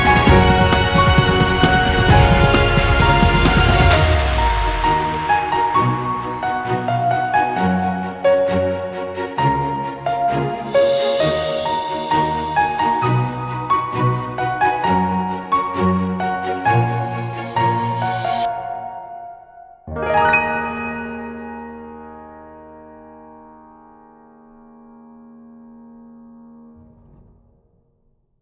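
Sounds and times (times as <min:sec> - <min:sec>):
background music: 0:00.0 - 0:19.4.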